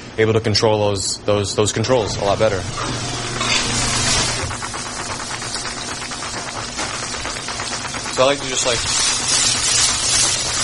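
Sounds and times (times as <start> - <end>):
speech: 0.2 - 3.4, 8.2 - 9.1
onion slowly sizzling in a pan: 2.2 - 10.6.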